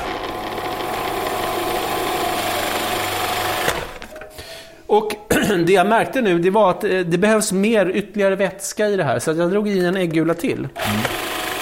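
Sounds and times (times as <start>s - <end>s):
electric mixer mixing pasta dough: 0.0s - 4.0s, 10.8s - 11.6s
speech: 4.9s - 11.2s.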